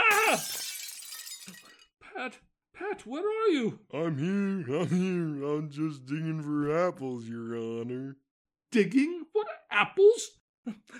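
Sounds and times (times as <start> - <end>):
sharp glass fragments tinkling and rattling: 0.0 - 1.8
window glass shattering: 0.0 - 1.8
speech: 0.3 - 0.5, 2.2 - 10.9.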